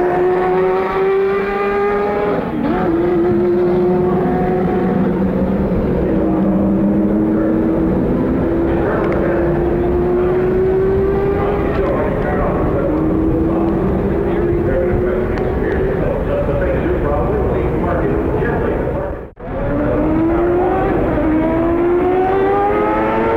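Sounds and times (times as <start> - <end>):
CART IndyCar engines roaring at Detroit: 0.0 - 23.3
commentator's voice: 8.5 - 10.0, 11.2 - 21.2.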